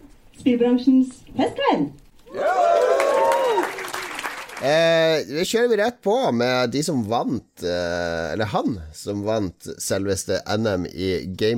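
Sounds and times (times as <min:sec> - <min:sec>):
speech: 0:00.4 - 0:02.7, 0:04.6 - 0:11.5
audience cheering and applause: 0:02.3 - 0:04.8.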